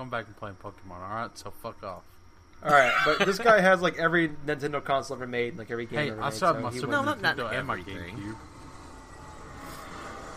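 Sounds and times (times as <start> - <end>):
speech: 0.0 - 8.5
jet aircraft flying overhead: 7.1 - 10.3.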